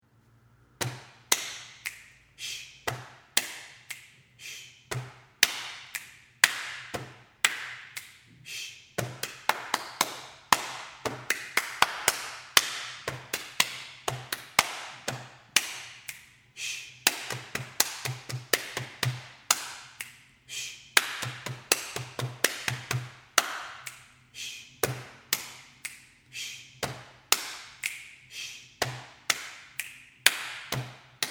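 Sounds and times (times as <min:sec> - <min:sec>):
body percussion: 0:00.8 - 0:02.2, 0:02.8 - 0:04.1, 0:04.9 - 0:08.2, 0:09.0 - 0:16.3, 0:17.0 - 0:20.2, 0:20.8 - 0:24.0, 0:24.8 - 0:26.0, 0:26.8 - 0:28.1, 0:28.8 - 0:31.3.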